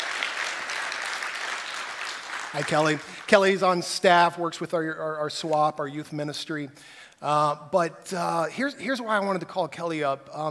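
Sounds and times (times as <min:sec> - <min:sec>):
crowd applause: 0:00.0 - 0:03.6
speech: 0:02.5 - 0:10.4.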